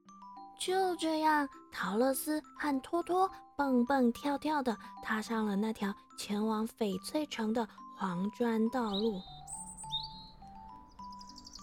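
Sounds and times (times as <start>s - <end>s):
speech: 0.6s - 9.3s
small birds singing: 8.6s - 11.6s.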